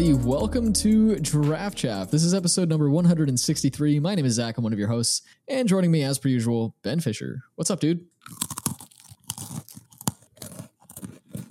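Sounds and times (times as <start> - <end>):
speech: 0.0 - 8.5
someone biting, chewing and tearing a Magic The Gathering card: 8.2 - 11.4.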